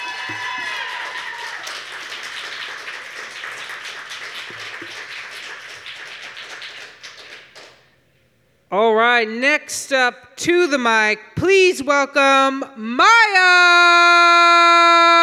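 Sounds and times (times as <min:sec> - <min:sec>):
audience applause: 0:00.0 - 0:07.8
speech: 0:00.3 - 0:00.7, 0:08.7 - 0:15.0.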